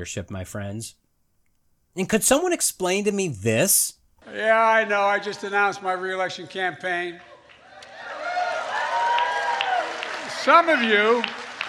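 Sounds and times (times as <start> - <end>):
speech: 0.0 - 1.0, 2.0 - 7.3, 10.4 - 11.4
laughter: 4.2 - 8.4
audience applause: 6.9 - 11.6.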